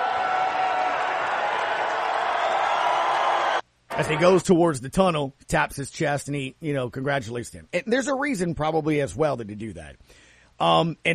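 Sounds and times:
crowd applause: 0.0s - 4.2s
speech: 4.0s - 11.1s.

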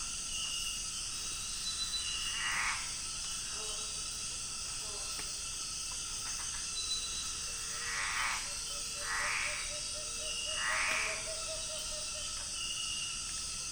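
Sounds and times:
insect hum: 0.0s - 13.7s
scraping tree frogs raspy calls: 2.3s - 2.9s, 7.7s - 9.7s, 10.5s - 11.3s.

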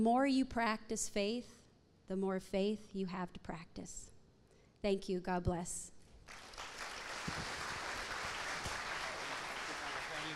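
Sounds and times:
speech: 0.0s - 4.1s, 4.8s - 6.5s
audience applause: 6.3s - 10.3s.

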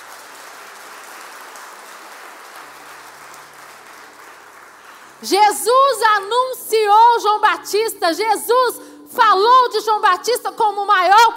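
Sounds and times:
audience applause: 0.0s - 5.2s
speech: 5.2s - 11.3s.

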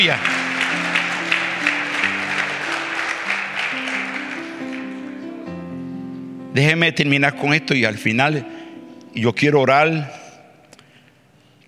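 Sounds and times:
speech: 0.0s - 0.9s, 6.6s - 8.6s, 9.2s - 10.2s
audience clapping loudly: 0.0s - 5.4s
low sustained keyboard chords: 0.0s - 10.1s.

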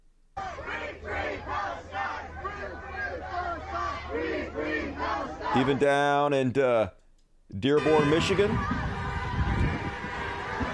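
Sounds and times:
rally crowd chanting in unison in streets: 0.4s - 5.9s, 8.0s - 10.7s
speech: 5.5s - 8.8s.

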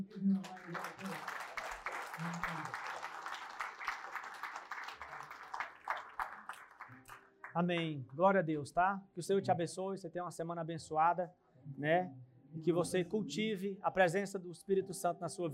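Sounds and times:
speech: 0.0s - 1.4s, 7.6s - 15.5s
audience applause: 0.0s - 7.5s.

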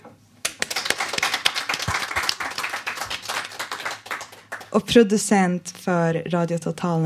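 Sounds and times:
audience applause: 0.4s - 4.7s
speech: 4.7s - 7.0s.

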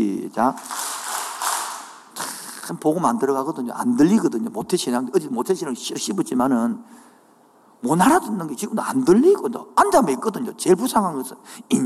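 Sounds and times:
speech: 0.0s - 0.8s, 2.7s - 7.2s, 7.8s - 11.8s
audience clapping: 0.6s - 2.7s.

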